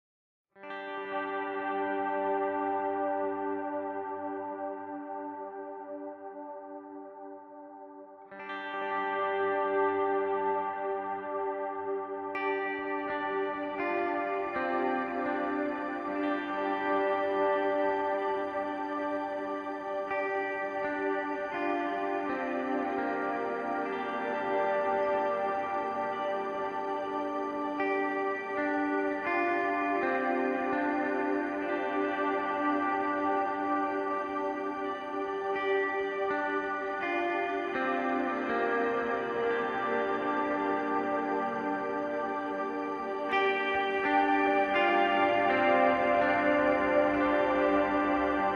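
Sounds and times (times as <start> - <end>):
ambient guitars: 0.6 - 48.5.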